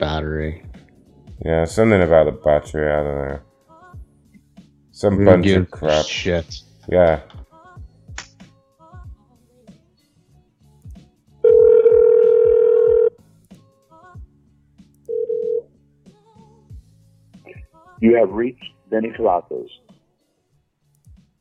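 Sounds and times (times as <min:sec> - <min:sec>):
speech: 0:00.0 - 0:00.8, 0:01.4 - 0:03.5, 0:05.0 - 0:07.4, 0:18.0 - 0:19.8
electronic telephone signal tone: 0:11.5 - 0:13.1, 0:15.1 - 0:15.6.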